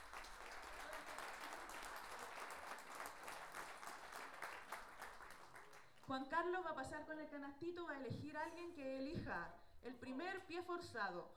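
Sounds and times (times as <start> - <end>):
audience applause: 0.0 - 5.8
speech: 6.1 - 11.3.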